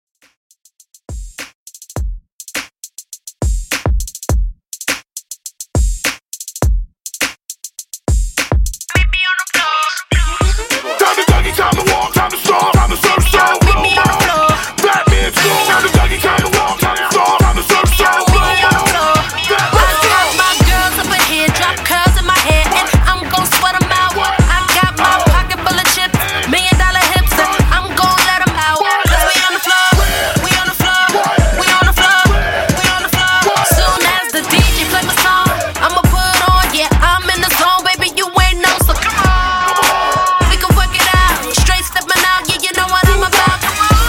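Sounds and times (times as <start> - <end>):
hip hop beat at 103 BPM: 0.2 - 44.0.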